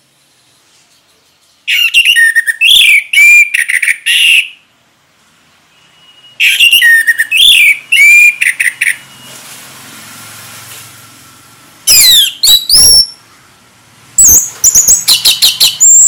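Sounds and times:
orange-headed thrush singing: 0:00.2 - 0:04.7, 0:05.7 - 0:09.3, 0:11.9 - 0:13.2, 0:14.2 - 0:16.0.

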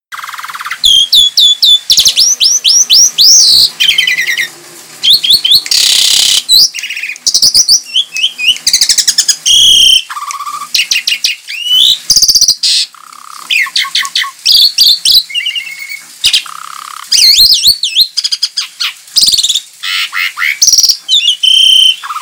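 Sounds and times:
Javan pied starling song: 0:00.1 - 0:22.2.

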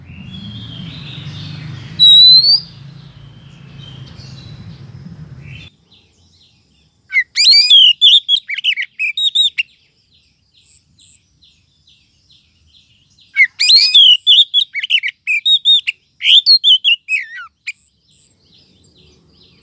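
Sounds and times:
Oriental magpie-robin rising whistle: 0:00.0 - 0:04.6, 0:07.1 - 0:09.6, 0:13.4 - 0:17.5.

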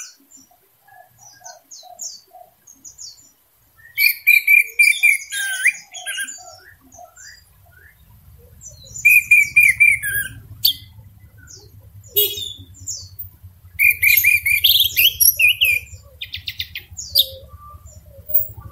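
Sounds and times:
orange-headed thrush singing: 0:04.0 - 0:18.6
low hum: 0:06.7 - 0:18.6.

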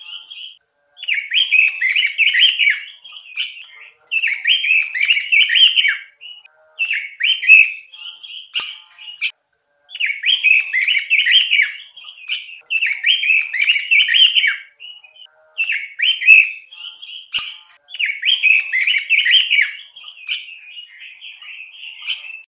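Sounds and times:
male robin singing: 0:00.0 - 0:22.4.

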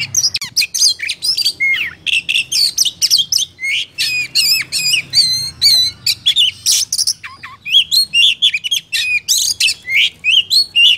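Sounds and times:
Oriental magpie-robin singing: 0:00.0 - 0:10.9.

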